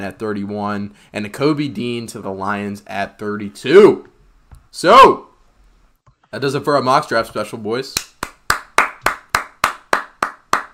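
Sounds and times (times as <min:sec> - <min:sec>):
speech: 0:00.0 - 0:04.1, 0:04.7 - 0:05.3, 0:06.3 - 0:08.1
slow golf claps from a single person: 0:08.0 - 0:10.7.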